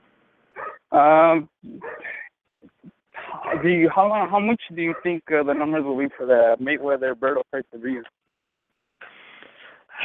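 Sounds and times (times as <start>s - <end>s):
dog barking: 0.6s - 0.9s, 1.8s - 2.2s, 3.2s - 5.2s
speech: 1.0s - 2.0s, 3.6s - 8.2s.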